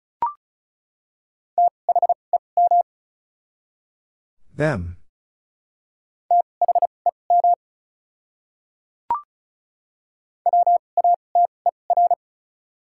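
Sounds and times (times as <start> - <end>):
Morse code beeps: 1.6 - 2.8, 6.3 - 7.6, 10.5 - 12.2
speech: 4.6 - 5.0.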